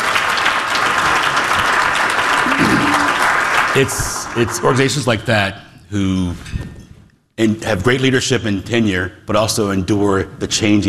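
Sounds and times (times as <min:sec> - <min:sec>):
audience applause: 0:00.0 - 0:05.0
speech: 0:03.8 - 0:06.8, 0:07.4 - 0:10.8.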